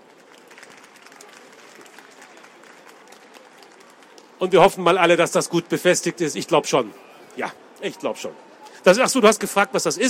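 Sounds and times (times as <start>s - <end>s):
audience applause: 0.0s - 4.8s
speech: 4.4s - 10.0s.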